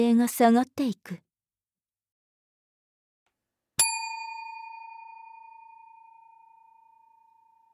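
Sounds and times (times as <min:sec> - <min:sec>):
speech: 0:00.0 - 0:01.2
bell strike during a guided age-regression visualization: 0:03.8 - 0:07.7.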